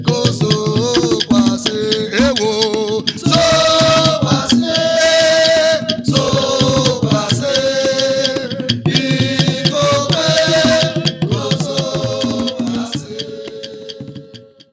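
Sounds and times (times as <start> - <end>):
Christian war dance music: 0.0 - 14.7.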